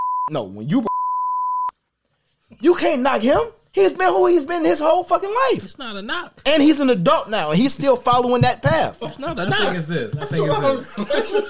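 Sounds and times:
electronic censor bleep: 0:00.0 - 0:00.3, 0:00.9 - 0:01.7
speech: 0:00.3 - 0:00.9, 0:02.6 - 0:11.4
laughter: 0:08.8 - 0:11.4.

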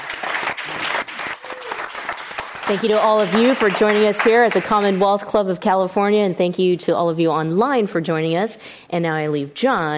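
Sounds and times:
audience round of applause: 0:00.0 - 0:05.0
speech: 0:02.7 - 0:09.9.

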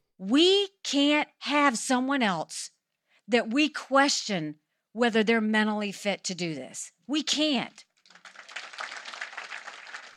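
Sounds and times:
speech: 0:00.2 - 0:07.9
rally crowd applause: 0:08.0 - 0:10.1.

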